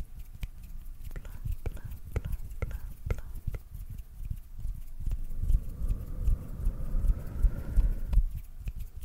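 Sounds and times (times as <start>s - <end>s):
soft mouth sounds: 0.2s - 8.9s
hand sounds: 1.1s - 8.5s
low rustling: 4.9s - 8.4s.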